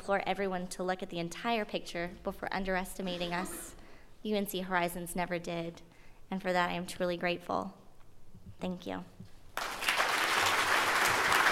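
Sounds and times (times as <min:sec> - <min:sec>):
speech: 0:00.0 - 0:07.8, 0:08.6 - 0:09.7
crowd clapping at the UNC Horizons ribbon cutting: 0:09.6 - 0:11.5.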